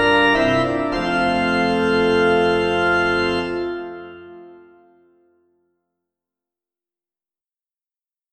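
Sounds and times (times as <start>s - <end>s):
organ playing hymns without words: 0.0s - 4.9s.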